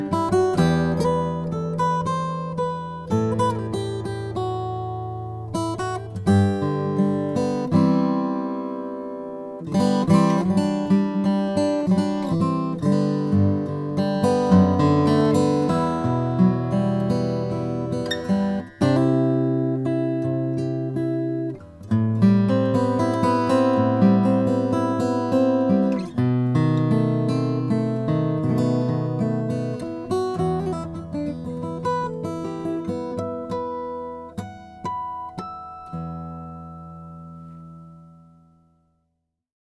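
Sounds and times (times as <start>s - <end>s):
oriental walnut guitar: 0.0s - 39.2s.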